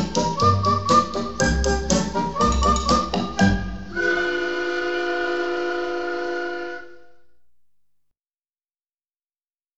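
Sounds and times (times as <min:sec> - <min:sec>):
instrumental music: 0:00.0 - 0:07.5.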